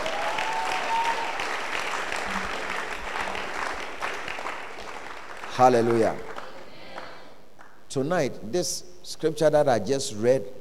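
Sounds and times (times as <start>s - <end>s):
audience clapping: 0.0s - 7.8s
speech: 5.6s - 6.3s, 7.9s - 10.5s.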